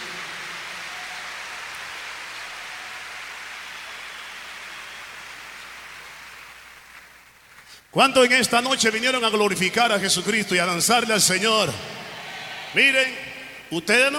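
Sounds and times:
audience applause: 0:00.0 - 0:07.6, 0:11.8 - 0:13.7
speech: 0:07.9 - 0:12.0, 0:12.7 - 0:14.1.

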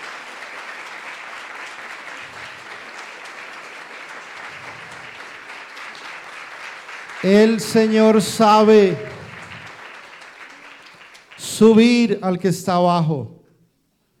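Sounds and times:
audience applauding: 0:00.0 - 0:12.2
speech: 0:07.2 - 0:09.1, 0:11.6 - 0:13.4.

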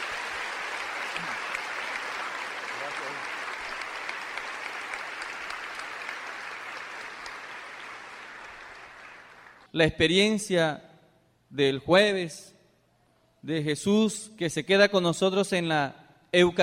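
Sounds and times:
audience applause: 0:00.0 - 0:09.7
speech: 0:09.7 - 0:10.9, 0:11.5 - 0:12.6, 0:13.4 - 0:16.6.

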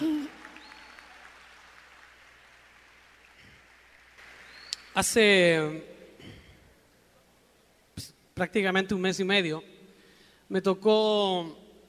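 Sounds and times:
audience applause: 0:00.0 - 0:04.6
speech: 0:05.0 - 0:05.9, 0:08.4 - 0:09.7, 0:10.5 - 0:11.6.

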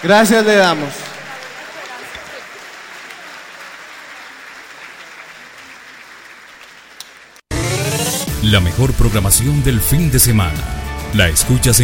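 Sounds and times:
speech: 0:00.0 - 0:01.1, 0:08.4 - 0:11.8
audience applause: 0:00.0 - 0:07.5.

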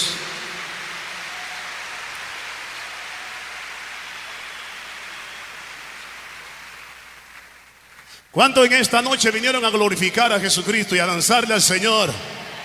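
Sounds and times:
audience applauding: 0:00.0 - 0:08.2, 0:12.0 - 0:12.6
speech: 0:08.3 - 0:12.4.

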